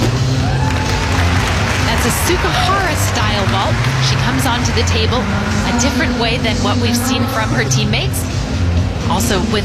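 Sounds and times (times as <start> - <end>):
crowd cheering for gymnast: 0.2 - 7.8
speech: 2.3 - 8.3, 9.1 - 9.6.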